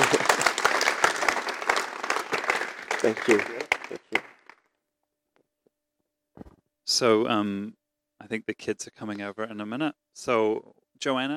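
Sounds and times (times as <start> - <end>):
audience applause: 0.0 - 4.7
speech: 3.0 - 3.6, 7.0 - 11.3.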